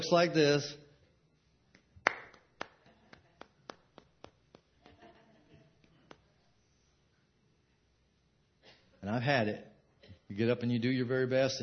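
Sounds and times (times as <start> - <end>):
speech: 0.0 - 0.8, 9.0 - 9.7, 10.3 - 11.6
sparse half-hearted sympathy clapping: 1.8 - 5.1.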